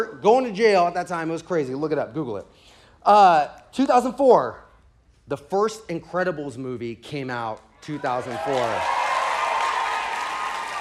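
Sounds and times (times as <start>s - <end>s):
speech: 0.0s - 4.6s, 5.3s - 9.0s
audience clapping: 8.0s - 10.7s.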